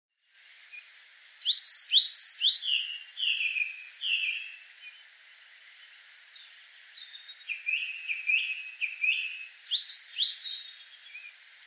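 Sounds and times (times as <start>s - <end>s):
coal tit calls and upward-sweeping whistles: 1.4s - 5.0s, 7.0s - 11.4s.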